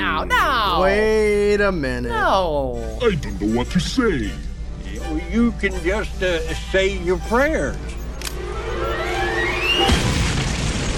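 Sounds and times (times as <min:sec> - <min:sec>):
speech: 0:00.2 - 0:04.5, 0:05.1 - 0:08.0
thin rising whistling tone: 0:08.6 - 0:10.3.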